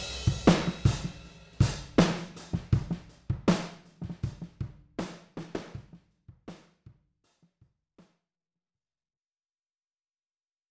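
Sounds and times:
alt-pop drums: 0:00.0 - 0:06.0.

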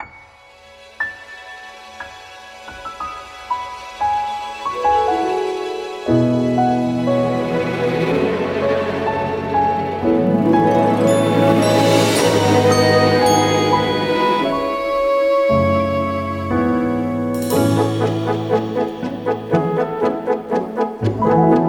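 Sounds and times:
indie music: 0:04.6 - 0:21.6.

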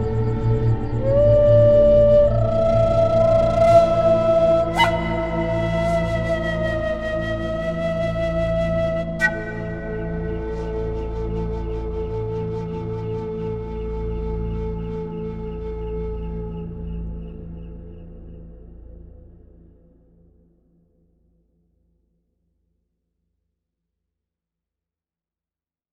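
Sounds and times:
forest kingdom night ambience: 0:00.0 - 0:19.2.

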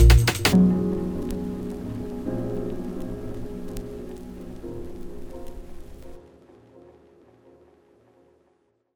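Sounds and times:
uptempo vinylistic rhythm: 0:00.0 - 0:06.2.

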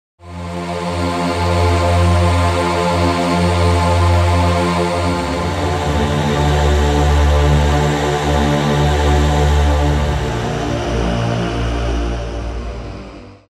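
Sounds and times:
dark cantus: 0:00.2 - 0:13.4.

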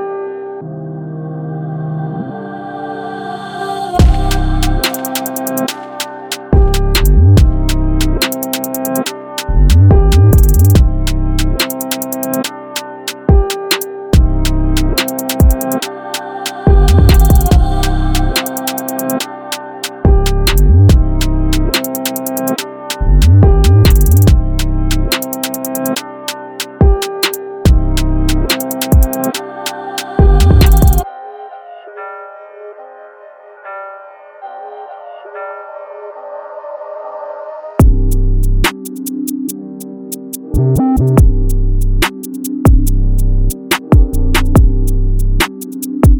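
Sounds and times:
hard drill hip hop beat: 0:04.0 - 0:31.0, 0:37.8 - 0:46.1.

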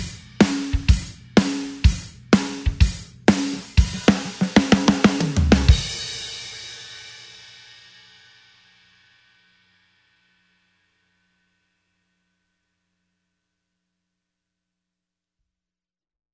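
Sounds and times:
tom drum shuffle groove in four-four: 0:00.0 - 0:07.2.

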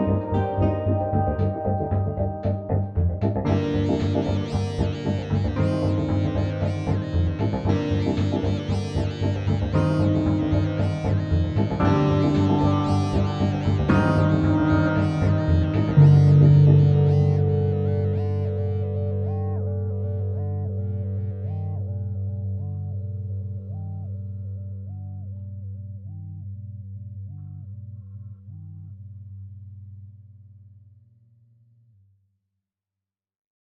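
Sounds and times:
arpeggio: 0:00.0 - 0:23.1.

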